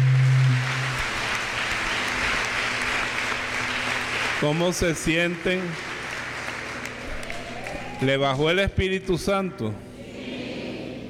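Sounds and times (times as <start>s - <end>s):
audience applause: 0.0s - 8.6s
speech: 4.4s - 5.9s, 8.0s - 9.8s.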